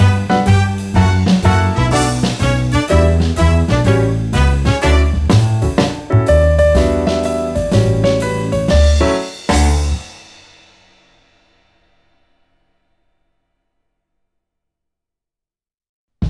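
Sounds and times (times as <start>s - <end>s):
instrumental children's song: 0.0s - 10.6s.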